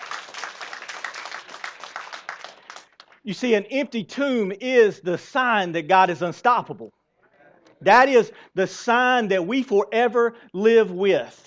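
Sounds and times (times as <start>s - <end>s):
audience clapping: 0.0s - 3.3s
speech: 3.2s - 7.0s, 7.8s - 11.4s.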